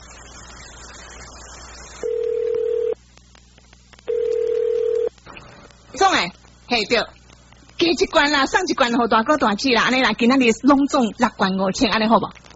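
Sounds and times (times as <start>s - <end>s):
telephone dialing tones: 2.1s - 3.0s, 4.1s - 5.1s
speech: 6.8s - 7.1s, 7.8s - 12.4s.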